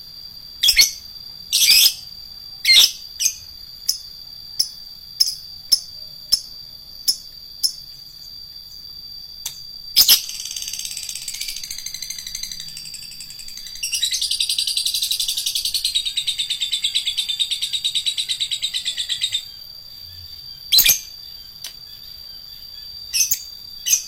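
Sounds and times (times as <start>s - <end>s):
lovebird calls: 0.6s - 2.0s, 2.6s - 3.4s, 10.0s - 19.6s, 20.7s - 21.1s.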